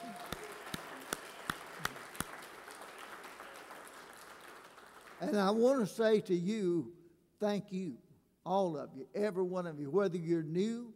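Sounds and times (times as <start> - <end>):
audience applauding: 0.0 - 5.6
speech: 5.2 - 10.9.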